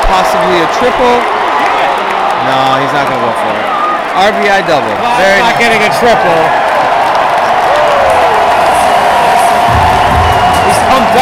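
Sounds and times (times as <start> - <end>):
baseball stadium crowd cheering: 0.0 - 11.2
speech: 0.1 - 1.4, 2.4 - 6.6.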